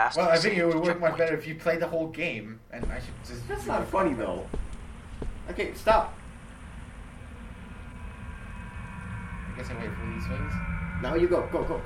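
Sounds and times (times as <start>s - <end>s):
speech: 0.0s - 4.6s, 5.5s - 6.2s, 9.6s - 11.8s
subway train rumble in a video game: 3.0s - 11.8s.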